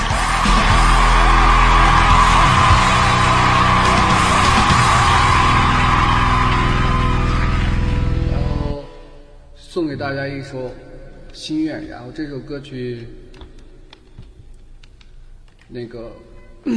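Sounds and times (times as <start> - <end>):
crowd clapping: 0.0 - 8.7
speech: 10.0 - 13.2, 15.7 - 16.7.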